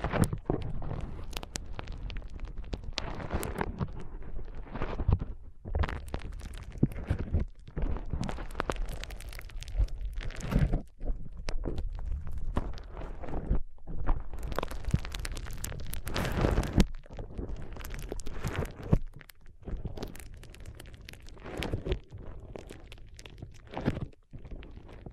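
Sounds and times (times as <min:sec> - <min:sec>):
foam squeezed and rubbed: 0:00.0 - 0:25.1.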